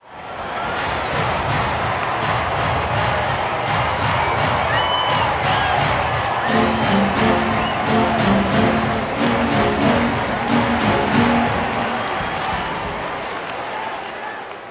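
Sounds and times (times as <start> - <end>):
baseball crowd clapping: 0.2 - 14.7
baseball stadium organ playing: 6.5 - 12.9.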